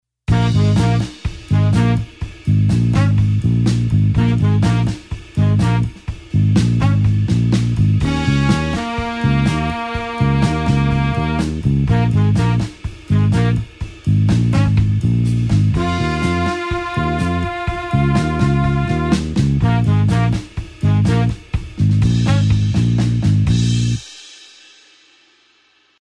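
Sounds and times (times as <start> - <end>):
blues horns playing an eight-beat groove in B flat: 0.3 - 23.9.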